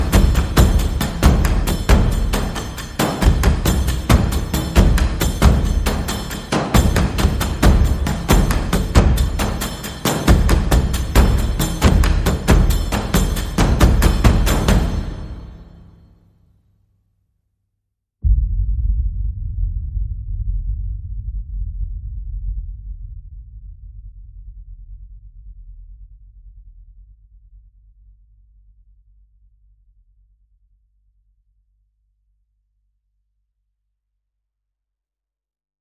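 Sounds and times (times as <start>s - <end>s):
trailer percussion: 0.0s - 16.2s, 18.2s - 24.4s.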